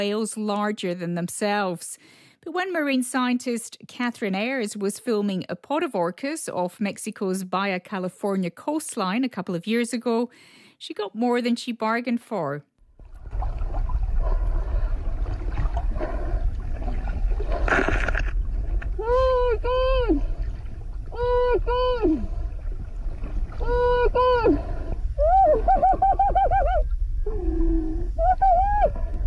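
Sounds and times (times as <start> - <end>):
speech: 0.0 - 12.7
boat and water noise: 12.8 - 29.2
woman shrieking in horror and delight: 19.0 - 20.2, 21.1 - 22.2, 23.6 - 24.6, 25.2 - 29.0.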